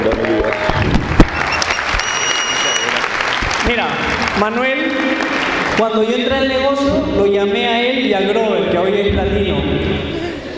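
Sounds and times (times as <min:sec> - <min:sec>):
audience applause: 0:00.0 - 0:05.9
faint whistle-like tones: 0:01.4 - 0:03.0
speech: 0:04.4 - 0:10.2.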